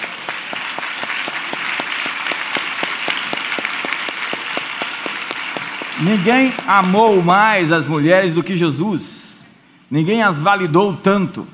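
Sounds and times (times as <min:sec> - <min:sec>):
audience round of applause: 0:00.0 - 0:08.6
speech: 0:06.0 - 0:09.1, 0:09.9 - 0:11.5.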